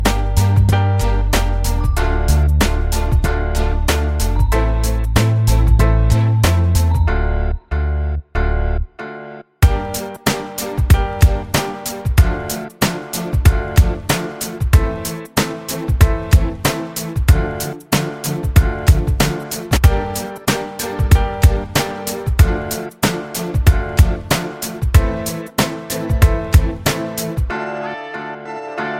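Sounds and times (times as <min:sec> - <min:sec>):
love music: 0:00.0 - 0:28.9.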